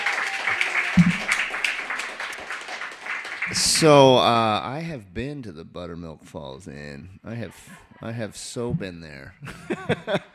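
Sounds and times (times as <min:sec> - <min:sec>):
audience applause for a featured reader: 0:00.0 - 0:04.2
speech: 0:03.5 - 0:10.3
laughter: 0:09.4 - 0:10.3.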